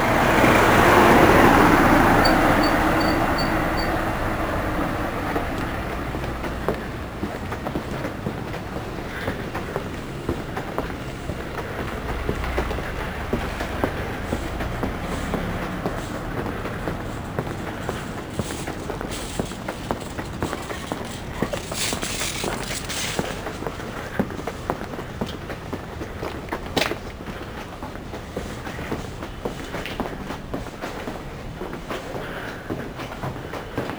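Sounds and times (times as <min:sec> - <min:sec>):
footsteps in a traffic tunnel: 0:00.0 - 0:33.9
traffic in a tunnel: 0:00.0 - 0:33.9.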